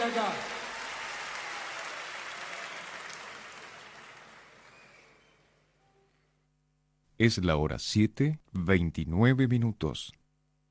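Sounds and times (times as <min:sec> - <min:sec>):
applause: 0:00.0 - 0:05.7
speech: 0:00.1 - 0:00.6, 0:07.2 - 0:10.2.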